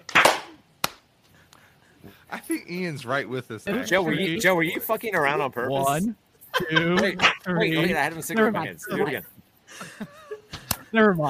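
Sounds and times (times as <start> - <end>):
group of people clapping: 0.0 - 1.0
speech: 2.4 - 9.4, 10.9 - 11.2
laughter: 3.7 - 10.9.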